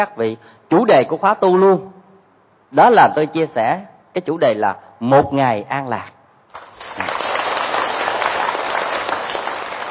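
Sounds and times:
speech: 0:00.0 - 0:02.0, 0:02.7 - 0:06.2, 0:07.0 - 0:07.2
audience clapping during a Buddhist talk: 0:06.5 - 0:09.8.

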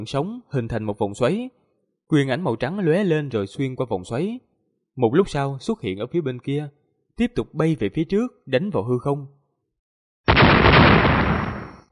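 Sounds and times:
speech: 0:00.0 - 0:09.4
deep rumbling explosion sound effect: 0:10.3 - 0:11.8.

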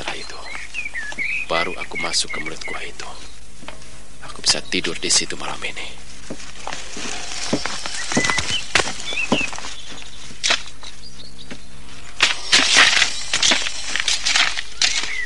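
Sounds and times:
faint bird chirps: 0:00.0 - 0:15.2
speech: 0:01.6 - 0:03.3, 0:04.4 - 0:07.1
tool digging soil in front of a cave mouth: 0:06.2 - 0:10.8, 0:11.9 - 0:15.2.

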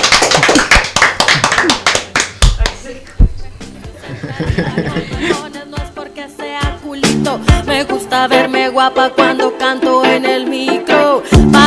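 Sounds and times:
applause: 0:00.0 - 0:02.8
laughter: 0:04.0 - 0:05.5
speech: 0:07.3 - 0:11.6.

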